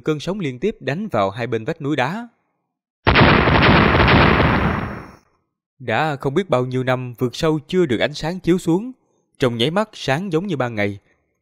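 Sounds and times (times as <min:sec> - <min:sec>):
speech: 0:00.0 - 0:02.4, 0:05.8 - 0:11.1
huge explosion booming up from a deep abyss: 0:03.1 - 0:05.2.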